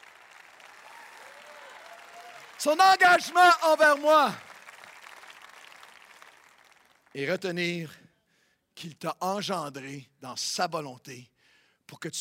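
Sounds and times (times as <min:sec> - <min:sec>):
audience applause: 0:00.0 - 0:07.1
speech: 0:02.6 - 0:04.5, 0:07.1 - 0:08.0, 0:08.8 - 0:11.3, 0:11.9 - 0:12.1.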